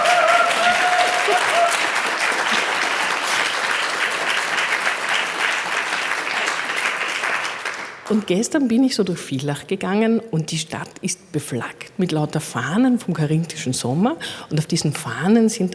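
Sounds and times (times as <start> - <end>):
audience applause for an all-women panel on stage: 0.0 - 8.2
speech: 8.1 - 15.7.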